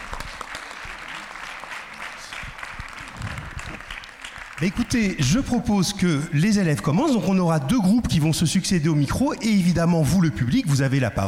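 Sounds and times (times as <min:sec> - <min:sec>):
audience in a radio studio clapping for a theatre troupe: 0:00.0 - 0:05.7
speech: 0:04.6 - 0:11.2.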